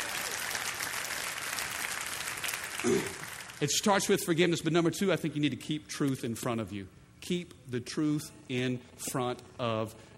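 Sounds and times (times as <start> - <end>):
audience clapping: 0.0 - 3.6
speech: 2.8 - 10.1.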